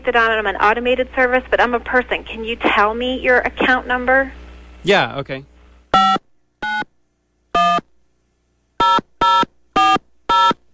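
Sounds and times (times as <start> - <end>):
speech: 0.0 - 5.5
telephone keypad button tones: 8.8 - 10.6.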